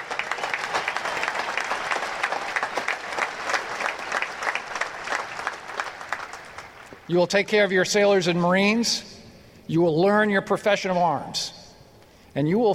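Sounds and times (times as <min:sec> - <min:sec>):
graduation crowd applauding: 0:00.0 - 0:07.1
speech: 0:07.1 - 0:09.1, 0:09.7 - 0:11.6, 0:12.4 - 0:12.7.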